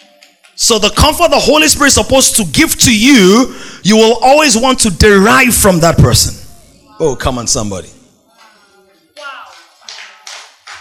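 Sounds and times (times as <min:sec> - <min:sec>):
man clapping at the back: 0:00.0 - 0:00.6, 0:09.2 - 0:10.7
speech: 0:00.6 - 0:06.4, 0:07.0 - 0:08.0.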